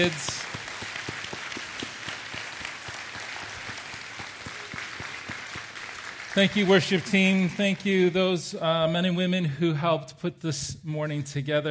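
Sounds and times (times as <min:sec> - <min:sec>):
speech: 0:00.0 - 0:00.4, 0:06.4 - 0:11.6
audience applause: 0:00.0 - 0:08.4.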